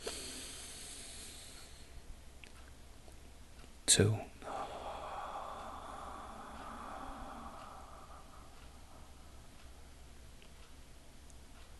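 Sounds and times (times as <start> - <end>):
deep inhaled breath during a guided breathing exercise: 0.0 - 2.0, 4.4 - 10.2
speech: 3.9 - 4.3.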